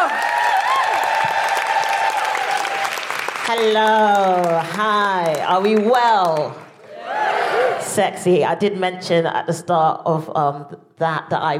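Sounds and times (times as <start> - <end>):
audience clapping for a stand-up comedian: 0.0 - 7.4
speech: 3.5 - 6.6, 7.8 - 11.5.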